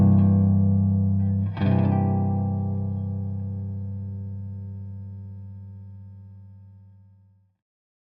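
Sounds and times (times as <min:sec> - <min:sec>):
Gibson ES 150 electric archtop guitar of maple and spruce through an amp: 0:00.0 - 0:06.4.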